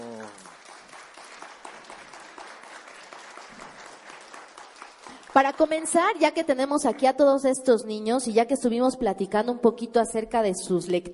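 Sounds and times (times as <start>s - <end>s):
audience applause: 0.0s - 6.4s
speech: 5.4s - 11.1s.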